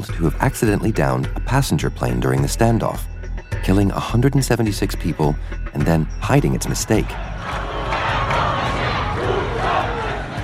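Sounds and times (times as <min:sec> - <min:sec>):
speech: 0:00.0 - 0:07.7
protest crowd shouting and chanting: 0:06.7 - 0:10.4.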